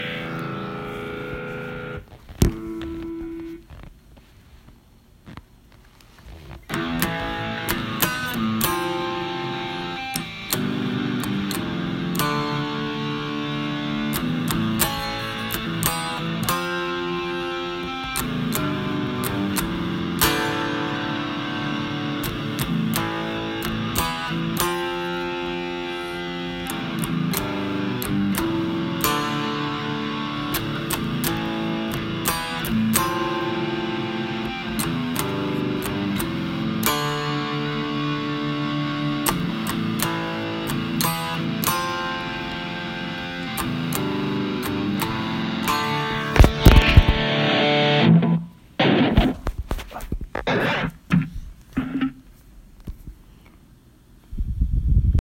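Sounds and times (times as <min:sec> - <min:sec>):
huge slow riff: 0:00.0 - 0:03.7, 0:06.7 - 0:52.4.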